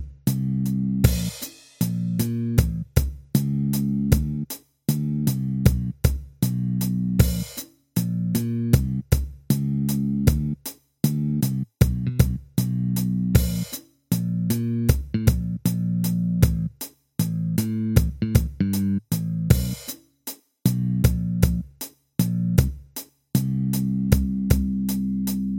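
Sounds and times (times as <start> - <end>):
bass tracks: 0.0 - 20.0, 20.6 - 25.5.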